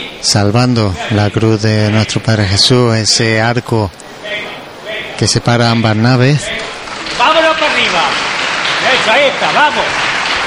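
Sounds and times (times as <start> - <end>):
speech: 0.0 - 4.6, 5.2 - 8.0, 9.0 - 10.1
crowd applauding a Good Friday religious procession in Jaén: 6.4 - 10.4.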